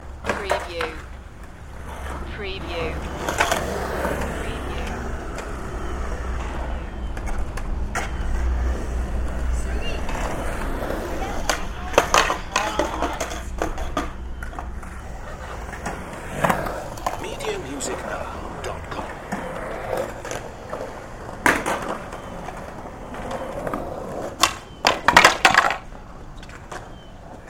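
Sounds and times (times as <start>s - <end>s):
skate park ambience: 0.0s - 27.4s.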